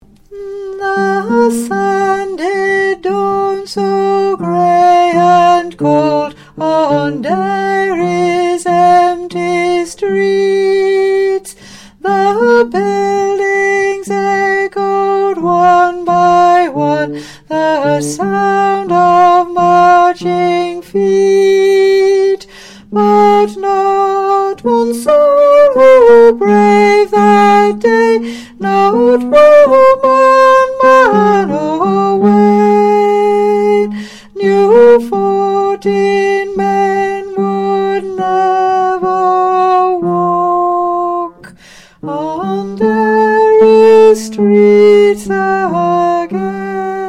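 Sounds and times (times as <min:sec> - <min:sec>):
tenor singing: 0:00.0 - 0:47.0.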